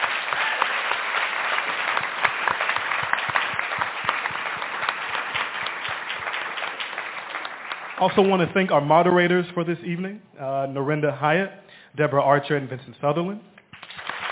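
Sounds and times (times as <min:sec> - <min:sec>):
audience applause: 0:00.0 - 0:08.6, 0:13.8 - 0:14.3
speech: 0:08.0 - 0:13.5.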